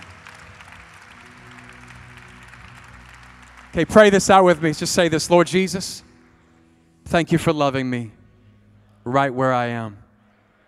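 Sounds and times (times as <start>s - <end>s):
audience clapping hands: 0.0s - 6.4s
sustained low musical tones: 0.0s - 10.6s
speech: 3.8s - 6.1s, 7.1s - 8.2s, 9.0s - 10.0s.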